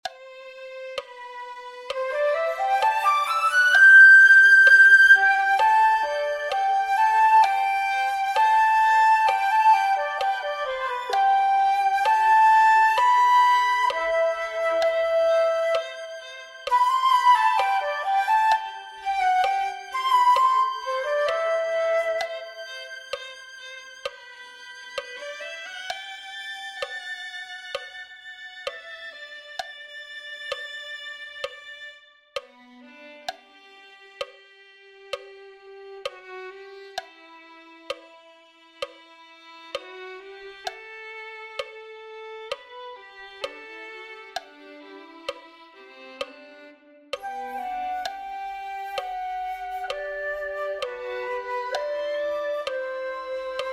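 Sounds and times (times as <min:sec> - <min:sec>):
flute: 0:00.0 - 0:30.6, 0:47.1 - 0:53.7.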